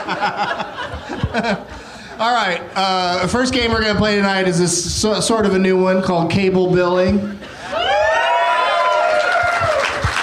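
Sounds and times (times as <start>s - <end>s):
laughter: 0.0s - 2.0s
speech: 0.0s - 7.8s
audience cheering: 7.6s - 10.2s
high wavering whoops: 7.6s - 10.2s.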